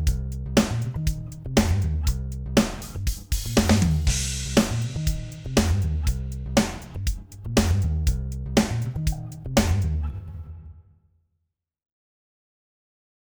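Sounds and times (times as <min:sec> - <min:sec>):
drums: 0:00.0 - 0:10.2
bass: 0:00.0 - 0:10.8.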